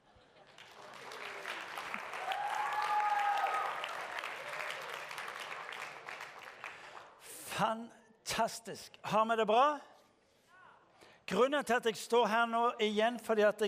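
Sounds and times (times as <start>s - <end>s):
crowd applause: 0.0s - 7.2s
speech: 7.6s - 9.9s, 11.3s - 13.6s.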